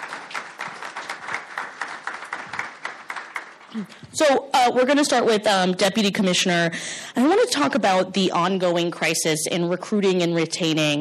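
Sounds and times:
audience applause: 0:00.0 - 0:03.9
speech: 0:03.7 - 0:10.9.

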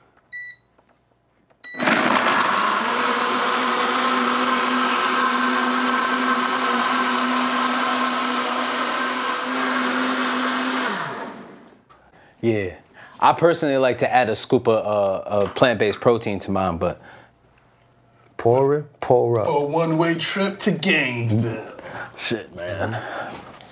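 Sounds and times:
blender mixing oats and sea moss gel: 0:01.7 - 0:11.9
speech: 0:12.4 - 0:17.2, 0:18.4 - 0:23.2.

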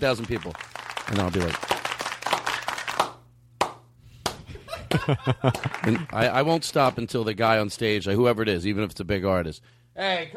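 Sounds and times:
speech: 0:00.0 - 0:01.7, 0:05.0 - 0:10.3
hand clapping: 0:00.0 - 0:06.2
laughter: 0:04.5 - 0:06.3.

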